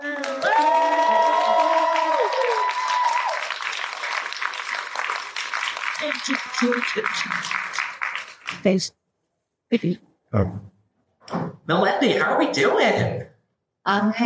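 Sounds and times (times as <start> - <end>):
audience clapping and cheering welcoming Melody Britt onto a panel stage: 0.0 - 8.8
speech: 6.2 - 7.6, 8.6 - 9.0, 9.7 - 10.7, 11.3 - 14.2.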